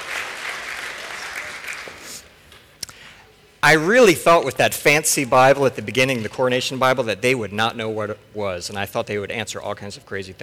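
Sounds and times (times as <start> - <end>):
audience applause: 0.0 - 2.2
speech: 3.6 - 10.4.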